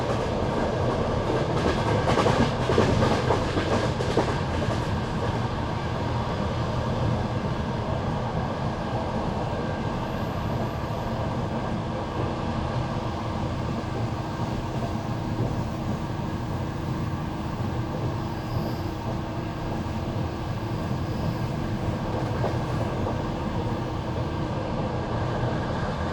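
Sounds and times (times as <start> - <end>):
old night train rumbling: 0.0 - 26.1.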